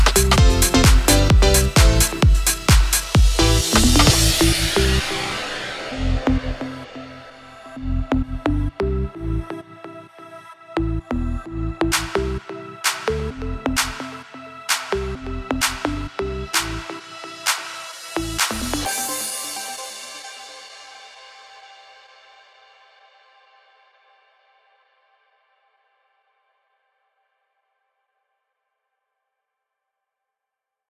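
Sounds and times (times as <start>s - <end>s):
house EDM anthems: 0.0s - 20.9s.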